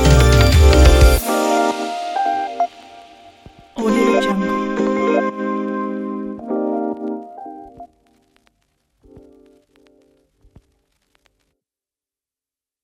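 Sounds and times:
upbeat hip hop music: 0.0s - 7.7s.

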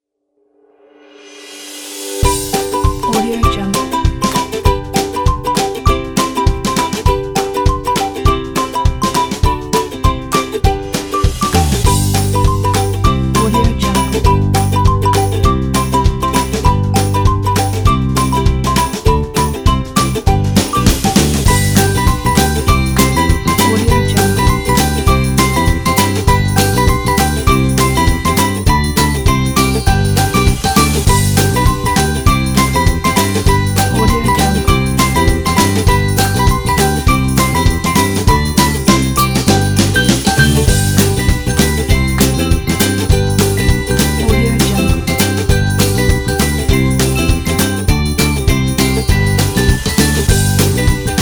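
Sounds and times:
happy children: 2.2s - 51.2s.

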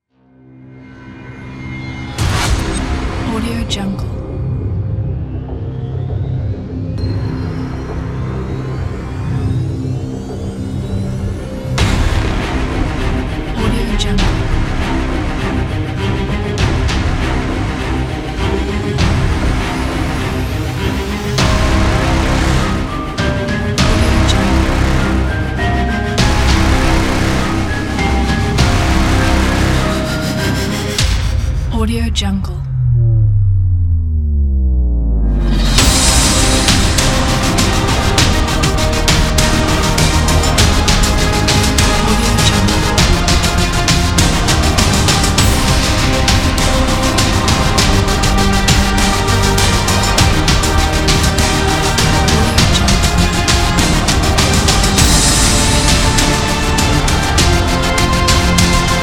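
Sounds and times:
intense cinematic music: 0.0s - 59.0s.

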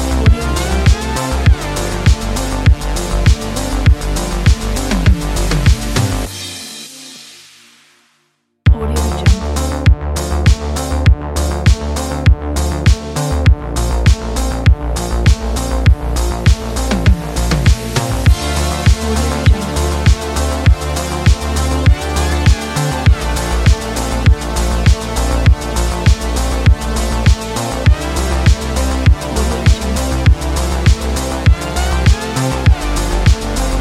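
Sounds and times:
80s retro synthwave music: 0.0s - 8.0s, 8.7s - 33.7s.

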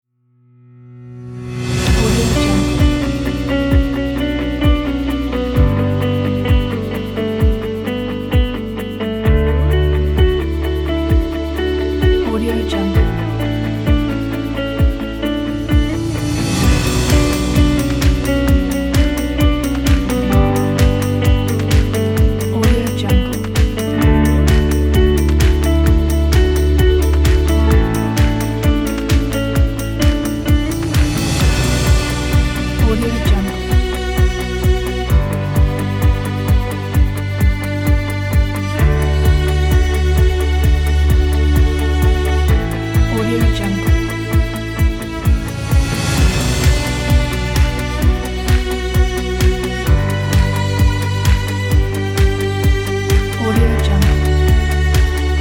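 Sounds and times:
energetic upbeat uplifting summer folk music: 1.6s - 55.3s.

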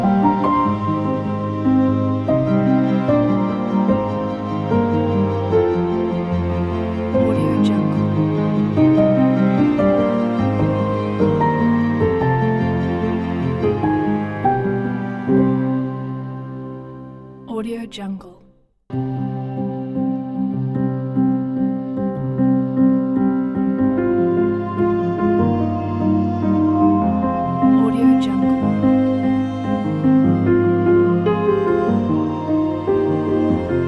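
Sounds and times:
inspirational piano music: 0.0s - 18.3s, 18.9s - 33.8s.

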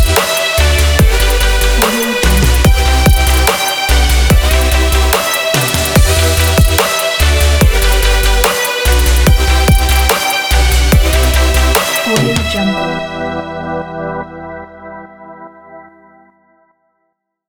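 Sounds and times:
energetic future bass music: 0.0s - 13.5s.

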